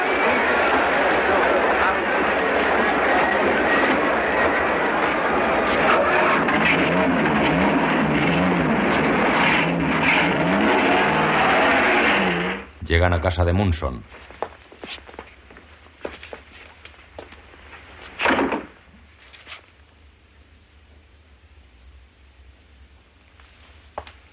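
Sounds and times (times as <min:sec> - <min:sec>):
car engine running as the vehicle pulls away and drives on: 0:00.0 - 0:12.8
indistinct voices: 0:00.0 - 0:13.9
speech: 0:13.0 - 0:15.0.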